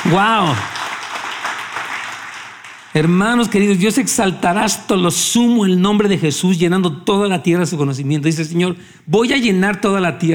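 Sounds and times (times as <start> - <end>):
audience applause: 0.0 - 3.1
speech: 0.1 - 0.8, 2.9 - 10.3.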